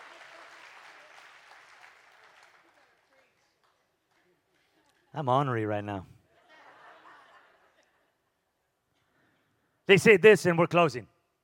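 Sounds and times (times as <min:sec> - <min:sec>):
audience clapping: 0:00.0 - 0:05.0
speech: 0:05.2 - 0:06.2, 0:09.9 - 0:11.1
laughter: 0:06.3 - 0:08.2.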